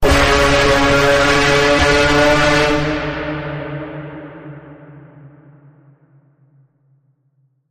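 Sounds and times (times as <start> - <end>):
pitch bend on C sharp: 0.0 - 4.2.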